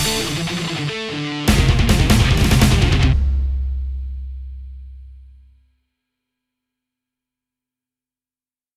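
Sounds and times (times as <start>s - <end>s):
guitar music: 0.0s - 3.2s.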